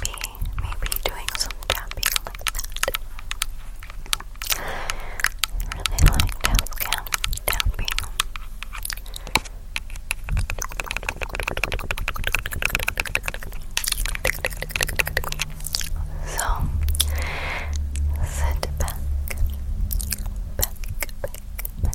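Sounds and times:
constant low hum: 0:00.0 - 0:21.9
mouth clicks and tapping: 0:00.0 - 0:21.9
breathy puffs: 0:04.4 - 0:06.7, 0:15.8 - 0:19.0.

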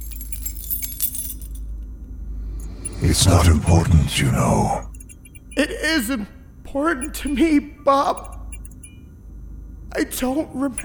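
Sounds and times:
keys jingling and scraping in door lock: 0:00.0 - 0:01.9, 0:02.6 - 0:03.0, 0:04.9 - 0:05.7, 0:07.0 - 0:07.5, 0:08.1 - 0:09.0, 0:10.1 - 0:10.8
low hum: 0:00.0 - 0:09.9
speech: 0:03.0 - 0:04.9, 0:05.6 - 0:08.3, 0:10.0 - 0:10.8.

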